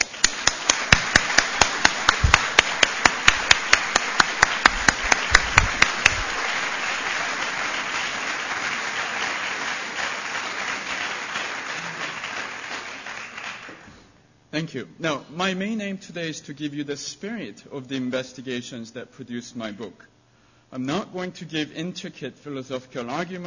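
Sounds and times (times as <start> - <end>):
audience applause: 0.0 - 13.9
speech: 14.6 - 20.1, 20.7 - 23.4.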